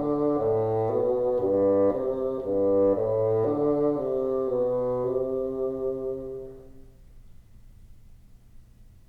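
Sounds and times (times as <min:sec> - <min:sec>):
bassoon: 0:00.0 - 0:07.0.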